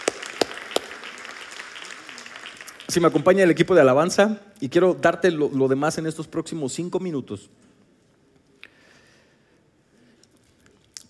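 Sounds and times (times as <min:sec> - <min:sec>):
hand claps: 0:00.0 - 0:03.2
hiss: 0:00.0 - 0:11.0
speech: 0:02.9 - 0:07.7.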